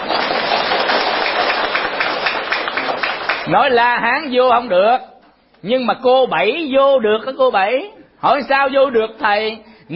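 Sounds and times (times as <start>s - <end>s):
audience applause: 0.0s - 3.5s
speech: 3.5s - 9.9s.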